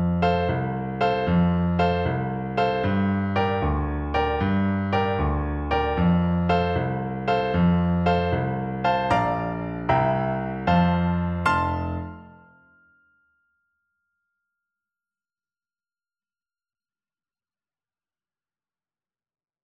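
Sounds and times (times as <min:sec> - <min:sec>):
tuba playing a folk tune: 0:00.2 - 0:12.5.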